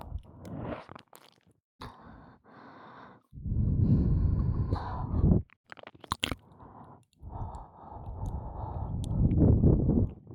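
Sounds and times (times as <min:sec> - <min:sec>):
breathing and ear licking in the right ear: 0:01.8 - 0:05.4, 0:06.6 - 0:10.0.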